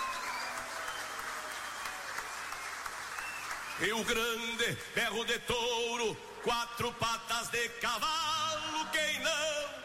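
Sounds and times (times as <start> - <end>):
audience applause: 0.0 - 5.0
speech: 3.8 - 8.3, 8.9 - 9.7.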